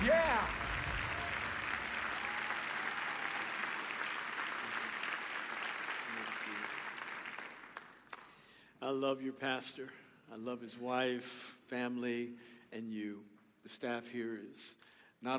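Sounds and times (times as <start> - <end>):
church congregation clapping in welcome for a guest pastor: 0.0 - 8.6
speech: 8.9 - 15.3.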